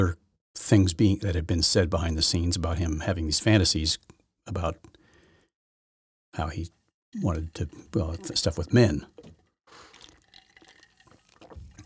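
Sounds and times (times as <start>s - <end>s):
speech: 0.0s - 5.0s, 6.3s - 9.8s
sipping tea: 7.2s - 11.8s.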